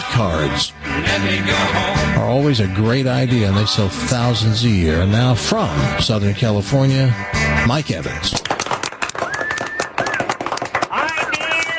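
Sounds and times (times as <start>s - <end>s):
speech: 0.2s - 8.5s
live audience crowd cheering: 8.5s - 11.7s.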